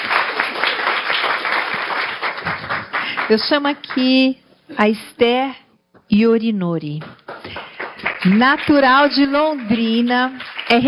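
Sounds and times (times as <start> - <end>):
audience applause: 0.0 - 4.0, 7.3 - 10.8
speech: 3.3 - 7.1, 8.2 - 10.8.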